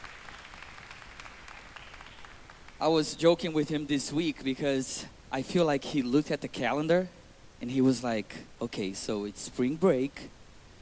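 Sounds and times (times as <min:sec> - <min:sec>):
church congregation applauding for its pastor: 0:00.0 - 0:02.8
speech: 0:02.8 - 0:10.4.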